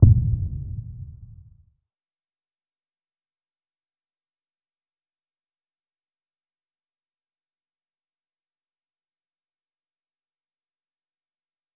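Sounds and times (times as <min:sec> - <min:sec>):
boom: 0:00.0 - 0:01.5.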